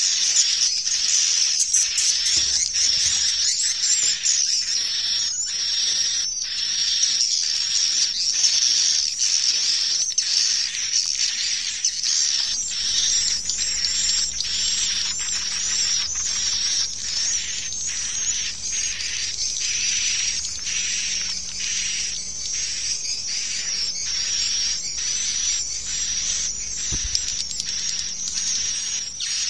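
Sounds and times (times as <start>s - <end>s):
swiftlet chorus twittering at a swiftlet farm in Asia: 0.2s - 29.4s.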